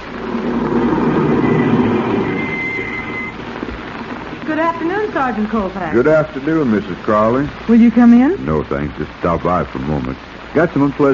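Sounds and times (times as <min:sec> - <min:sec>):
car driving up: 0:00.0 - 0:03.9
speech: 0:05.1 - 0:11.1.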